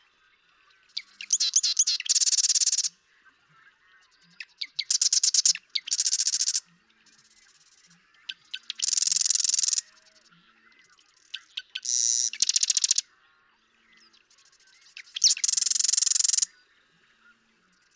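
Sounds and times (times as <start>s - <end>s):
marsh wren rattling song: 1.0s - 2.9s, 4.7s - 6.6s, 8.3s - 9.8s, 11.3s - 13.0s, 15.0s - 16.5s.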